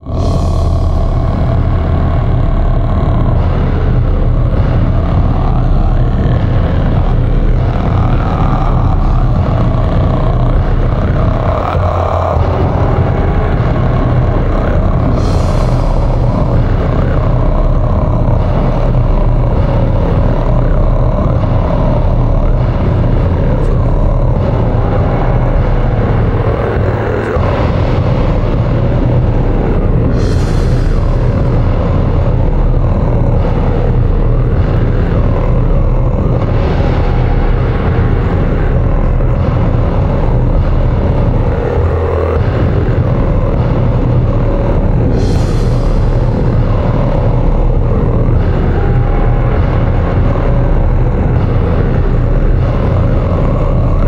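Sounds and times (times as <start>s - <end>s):
battle music with Mongolian voice: 0.0s - 54.0s.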